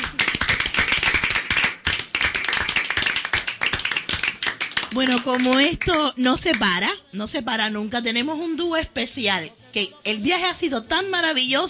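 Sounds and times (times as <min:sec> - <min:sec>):
applause: 0:00.0 - 0:06.7
speech: 0:04.9 - 0:11.6.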